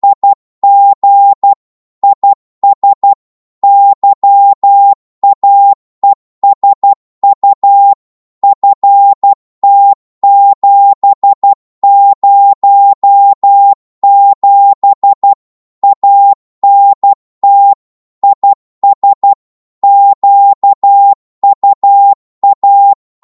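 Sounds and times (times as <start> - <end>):
Morse code QSO at 12 wpm: 0.0 - 23.2.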